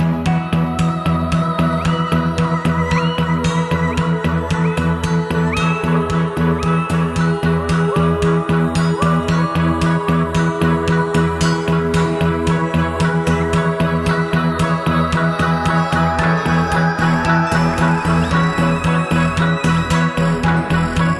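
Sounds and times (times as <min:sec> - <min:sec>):
oboes: 0:00.2 - 0:21.1
flutes: 0:00.5 - 0:21.1.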